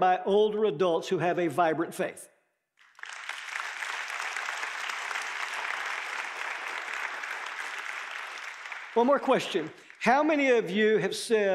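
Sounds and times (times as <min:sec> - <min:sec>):
speech: 0:00.0 - 0:02.4, 0:09.0 - 0:11.5
audience applause: 0:02.8 - 0:10.4.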